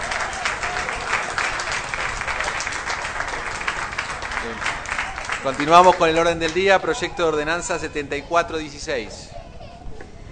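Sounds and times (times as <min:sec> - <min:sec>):
council members applauding: 0:00.0 - 0:07.4
speech: 0:04.5 - 0:04.7, 0:05.4 - 0:09.4.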